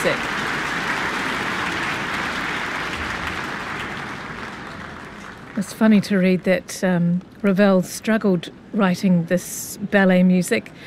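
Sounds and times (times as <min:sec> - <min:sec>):
speech: 0:00.0 - 0:00.4, 0:05.6 - 0:10.8
concert audience applause: 0:00.0 - 0:05.6.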